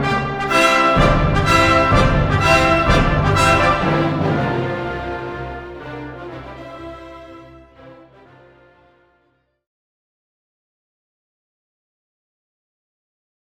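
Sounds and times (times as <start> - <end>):
trumpets playing together: 0.0 - 9.2.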